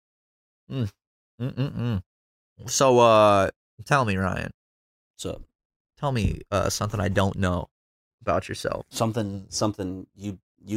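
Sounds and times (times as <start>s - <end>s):
person yawning while stretching: 0.7s - 2.0s
speech: 0.7s - 4.6s, 5.2s - 10.7s.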